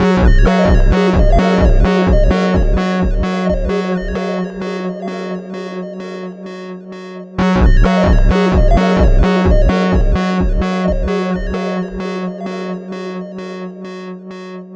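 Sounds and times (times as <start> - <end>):
music: 0.0 - 14.7.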